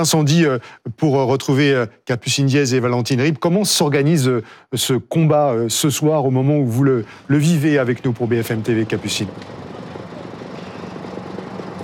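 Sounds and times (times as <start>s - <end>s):
speech: 0.0s - 9.7s
Dragon firefighting helicopter flying overhead: 7.1s - 11.8s.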